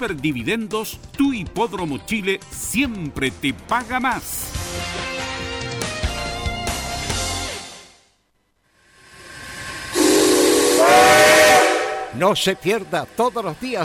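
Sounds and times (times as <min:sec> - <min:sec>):
speech: 0:00.0 - 0:05.2, 0:12.2 - 0:13.8
hissing steam: 0:08.8 - 0:13.8
steam train whistle as a radio jingle effect: 0:09.5 - 0:12.6.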